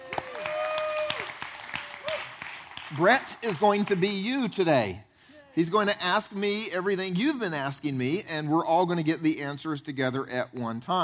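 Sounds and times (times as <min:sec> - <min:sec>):
church congregation applauding to welcome the worship pastor: 0:00.0 - 0:04.0
speech: 0:02.9 - 0:11.0.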